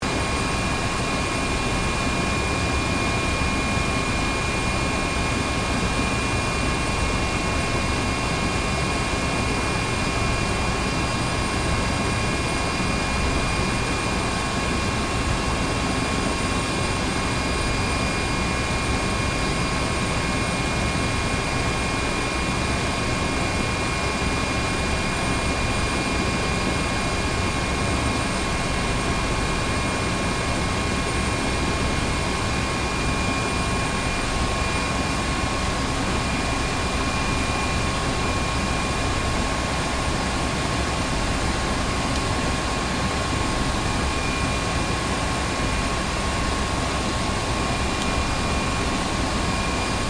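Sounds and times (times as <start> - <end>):
HH-65 Dolphin helicopter idling heard from interior: 0.0 - 50.0.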